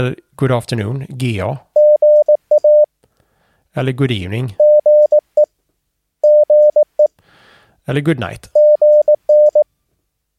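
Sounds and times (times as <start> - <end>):
speech: 0.0 - 1.7, 3.8 - 4.6, 7.9 - 8.5
Morse code CW abbreviation tones: 1.8 - 2.9, 4.6 - 5.5, 6.2 - 7.0, 8.6 - 9.6.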